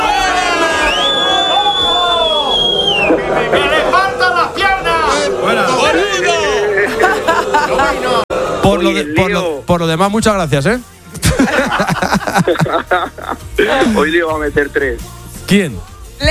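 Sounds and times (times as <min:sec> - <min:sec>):
crowd booing: 0:00.0 - 0:08.8
speech: 0:03.5 - 0:03.8, 0:08.6 - 0:16.3
laughter: 0:05.1 - 0:08.3, 0:11.2 - 0:14.2.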